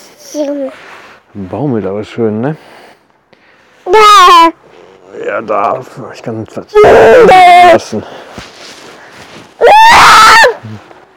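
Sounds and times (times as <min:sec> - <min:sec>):
speech: 0:00.3 - 0:02.8, 0:03.9 - 0:08.5, 0:10.6 - 0:10.9
people yelling: 0:06.8 - 0:07.8, 0:09.6 - 0:10.6.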